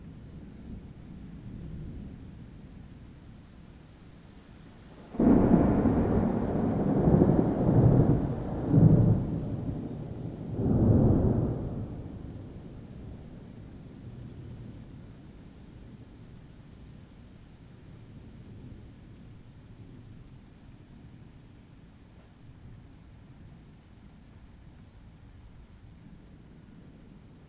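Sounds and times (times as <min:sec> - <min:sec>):
rain: 0:00.0 - 0:27.4
thunder: 0:05.1 - 0:13.6.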